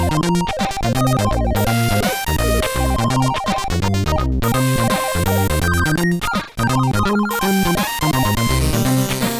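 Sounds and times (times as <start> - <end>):
SID chip guitar music: 0.0 - 9.3.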